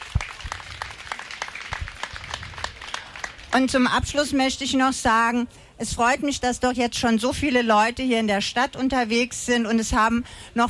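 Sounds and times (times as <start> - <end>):
audience applause: 0.0 - 3.6
speech: 3.6 - 10.6.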